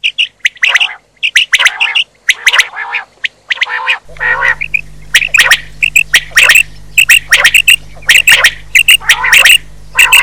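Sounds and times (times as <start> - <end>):
quail calls: 0.0 - 10.2.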